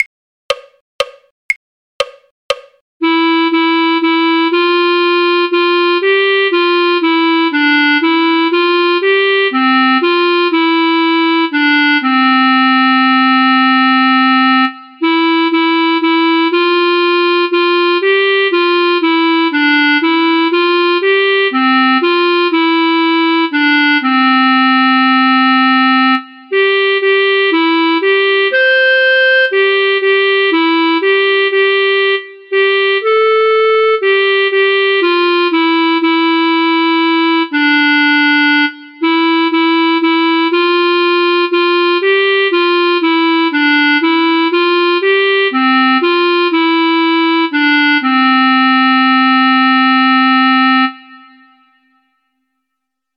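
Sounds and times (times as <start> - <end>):
clarinet: 3.0 - 52.1.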